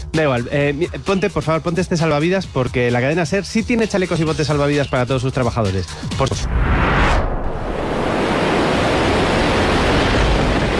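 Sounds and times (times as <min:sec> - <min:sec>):
speech: 0:00.1 - 0:06.9
storm at sea: 0:06.1 - 0:10.7
heavy rain at sea: 0:07.4 - 0:10.7.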